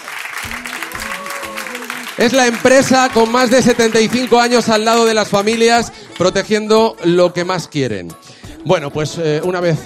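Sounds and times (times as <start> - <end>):
audience applause: 0.0 - 6.4
speech: 2.2 - 9.8.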